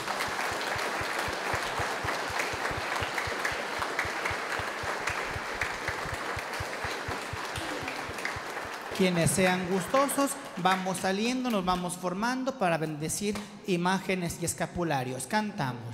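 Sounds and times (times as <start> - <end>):
audience applause: 0.0 - 11.1
speech: 9.0 - 15.9.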